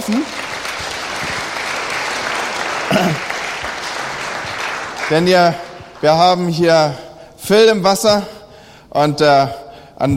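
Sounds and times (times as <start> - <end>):
audience applause: 0.0 - 6.6
speech: 0.1 - 0.4, 2.9 - 3.3, 5.1 - 8.4, 9.0 - 10.1.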